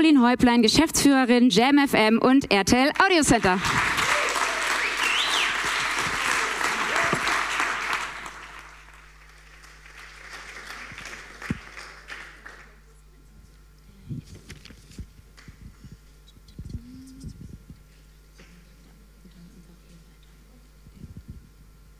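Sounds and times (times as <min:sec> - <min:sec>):
speech: 0:00.0 - 0:03.9
audience applause: 0:03.0 - 0:12.9.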